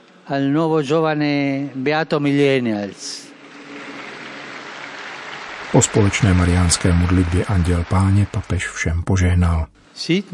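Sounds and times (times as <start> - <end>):
speech: 0.3 - 3.3, 5.7 - 10.3
crowd applauding: 3.3 - 9.4.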